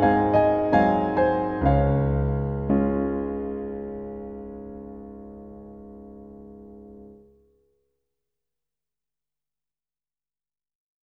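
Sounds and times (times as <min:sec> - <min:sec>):
solo piano waltz in D flat: 0:00.0 - 0:07.5.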